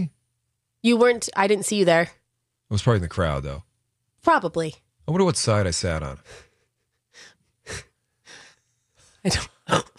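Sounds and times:
speech: 0.8 - 6.5, 7.2 - 7.9, 9.2 - 9.8
cough mixed with laughter: 9.3 - 9.9.

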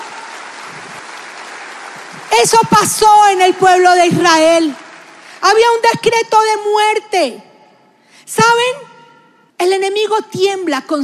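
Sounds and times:
audience applause: 0.0 - 2.7, 3.7 - 5.4
speech: 2.3 - 4.8, 5.4 - 7.5, 8.3 - 8.9, 9.6 - 11.0.

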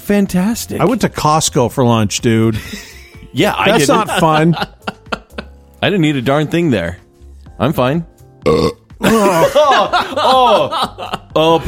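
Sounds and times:
speech: 0.1 - 5.0, 5.8 - 7.0, 7.6 - 11.6
laughter: 3.5 - 5.6, 9.0 - 11.6
loud burp into microphone: 8.4 - 9.4.

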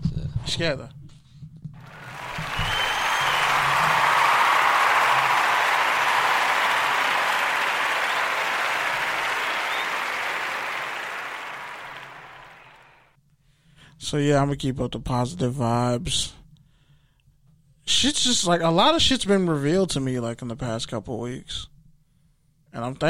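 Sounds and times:
speech: 0.5 - 1.0, 14.1 - 16.4, 18.0 - 21.7, 22.8 - 23.0
canned applause and cheering from a sound effect button: 1.8 - 13.1.

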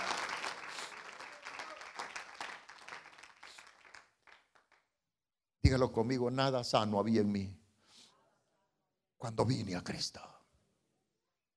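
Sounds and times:
church congregation clapping in praise at a Spanish-language service: 0.0 - 4.9
speech: 5.7 - 7.6, 9.2 - 10.3.

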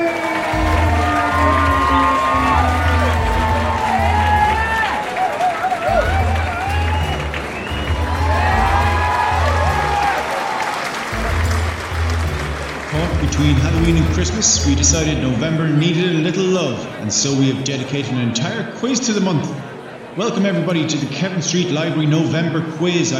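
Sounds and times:
library quiz night audience clapping: 0.0 - 15.1
speech: 14.4 - 23.1.

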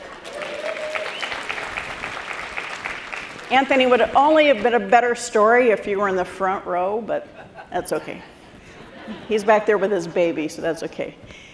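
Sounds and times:
audience applause: 0.0 - 3.9
speech: 3.5 - 8.3, 9.1 - 11.5
laughter: 7.2 - 10.2.

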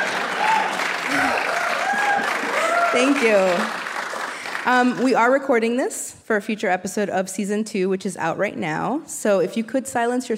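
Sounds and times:
audience applause: 0.0 - 5.2
speech: 3.0 - 3.8, 4.6 - 10.3.

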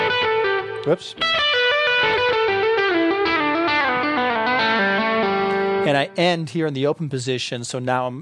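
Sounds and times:
distorted electric guitar pentatonic run with pull-offs: 0.0 - 5.8
speech: 0.8 - 2.1, 5.8 - 8.1.

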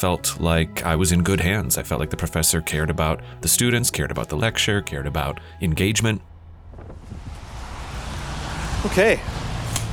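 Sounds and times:
speech: 0.0 - 6.9, 8.8 - 9.4
blustery wind buffeting the microphone: 6.3 - 9.9
steady rain hissing: 6.9 - 9.9.

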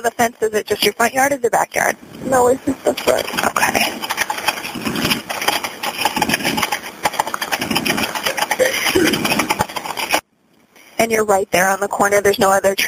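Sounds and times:
speech: 0.0 - 5.2, 11.0 - 12.8
vehicle engine running as someone pulls up at a property: 2.2 - 10.2.

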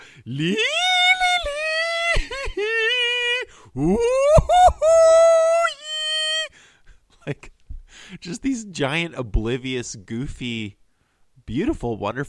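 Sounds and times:
speech: 0.2 - 0.8, 3.8 - 4.2, 8.2 - 10.8, 11.5 - 12.2
person imitating a whale call: 0.3 - 6.5.

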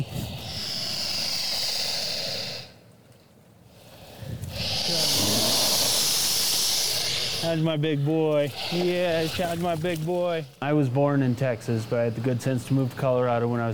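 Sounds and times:
dog snorting and sniffing: 4.6 - 7.6, 8.5 - 9.7
speech: 7.5 - 13.7.

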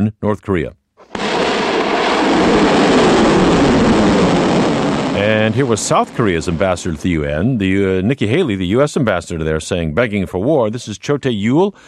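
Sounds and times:
speech: 0.0 - 0.8, 5.2 - 11.8
South Korean military ballistic missile launch into the Sea of Japan: 1.0 - 8.4.

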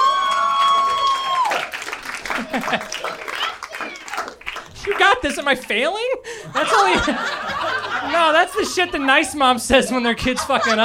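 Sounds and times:
scattered applause: 0.2 - 5.8
laughter: 2.2 - 3.5, 6.3 - 10.8
speech: 2.6 - 3.1, 5.2 - 7.4, 8.0 - 10.8.

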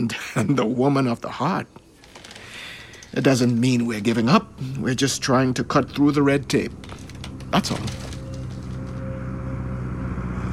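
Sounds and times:
speech: 0.0 - 1.8, 3.1 - 8.1
airplane engine landing: 2.1 - 10.5.

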